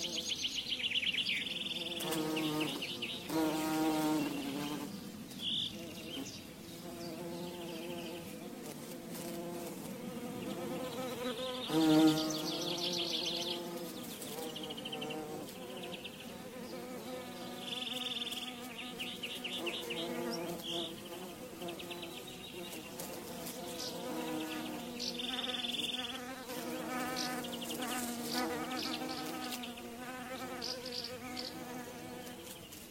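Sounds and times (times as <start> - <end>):
bees buzzing: 0.0 - 32.9.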